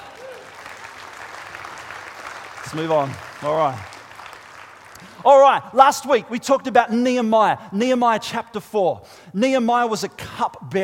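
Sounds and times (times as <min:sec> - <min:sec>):
audience clapping: 0:00.0 - 0:06.2
speech: 0:02.7 - 0:03.9, 0:05.2 - 0:10.8.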